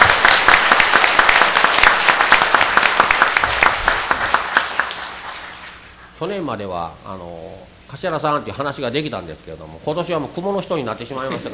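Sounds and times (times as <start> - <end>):
audience applause: 0.0 - 6.2
speech: 6.2 - 11.5.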